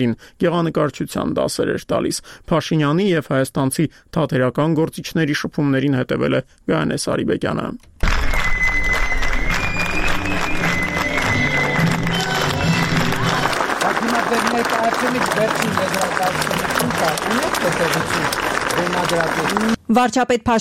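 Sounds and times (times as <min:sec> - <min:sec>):
speech: 0:00.0 - 0:08.3, 0:15.4 - 0:20.5
audience applause in a theatre at an event attended by Prime Minister Pashinyan: 0:08.0 - 0:19.8
crowd noise in a theatre: 0:08.0 - 0:19.8.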